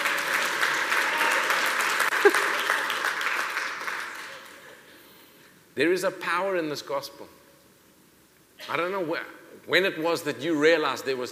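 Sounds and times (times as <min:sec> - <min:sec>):
audience member clapping: 0:00.0 - 0:04.7
speech: 0:05.8 - 0:07.4, 0:08.7 - 0:11.3.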